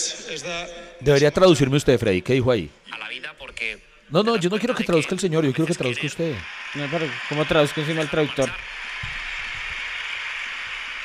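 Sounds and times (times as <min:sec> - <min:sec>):
speech: 0:00.3 - 0:09.2
steady applause of many hands clapping: 0:06.4 - 0:11.0.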